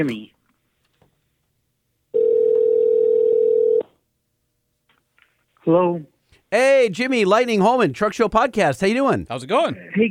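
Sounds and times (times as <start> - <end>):
speech: 0.0 - 0.4, 5.6 - 10.1
dial tone during telephone call transfer: 2.2 - 3.9.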